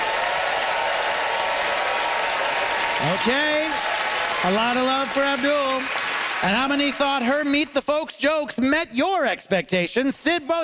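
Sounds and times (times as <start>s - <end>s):
audience applause: 0.0s - 7.7s
speech: 3.0s - 10.6s.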